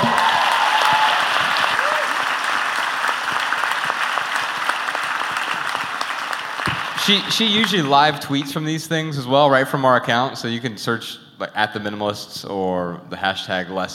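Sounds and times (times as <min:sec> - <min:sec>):
audience applause: 0:00.0 - 0:08.6
speech: 0:07.1 - 0:13.9.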